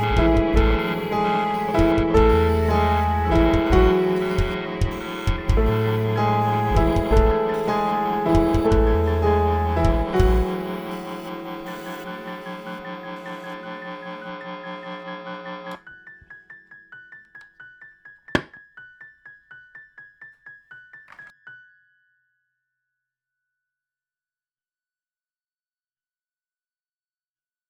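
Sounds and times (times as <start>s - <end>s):
electricity soundscape: 0.0s - 15.7s.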